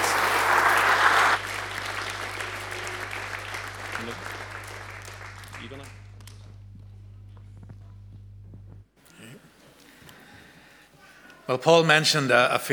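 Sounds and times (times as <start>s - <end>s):
audience applause: 0.0s - 6.5s
speech: 11.5s - 12.7s.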